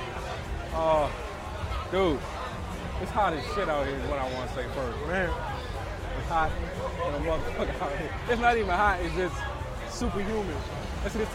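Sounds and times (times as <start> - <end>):
outdoor crowd murmur: 0.0 - 11.3
speech: 1.9 - 2.4, 3.0 - 5.7, 6.3 - 11.3.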